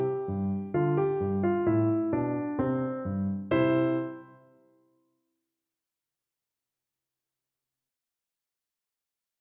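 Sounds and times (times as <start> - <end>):
ragtime piano: 0.0 - 4.3.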